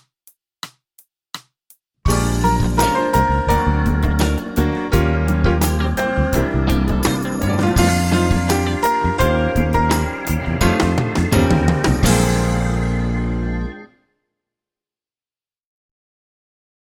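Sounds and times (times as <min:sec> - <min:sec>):
strings in B flat: 0:02.1 - 0:13.8.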